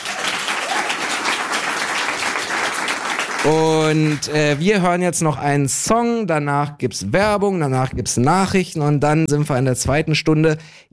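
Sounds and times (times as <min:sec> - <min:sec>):
audience applause: 0:00.0 - 0:04.9
speech: 0:03.4 - 0:10.9.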